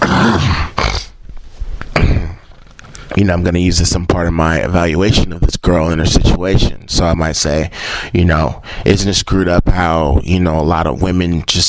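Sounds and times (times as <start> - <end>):
person clearing throat: 0.0 - 1.2, 1.9 - 2.6
speech: 3.2 - 11.6.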